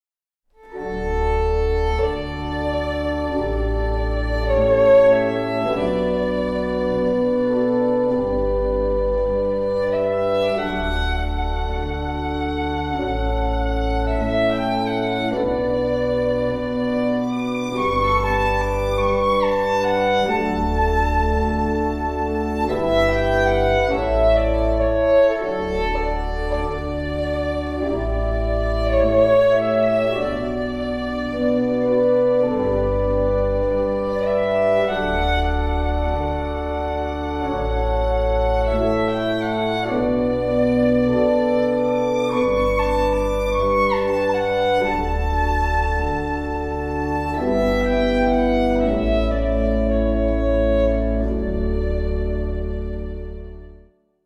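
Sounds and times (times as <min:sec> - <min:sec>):
violin: 0:00.6 - 0:54.0.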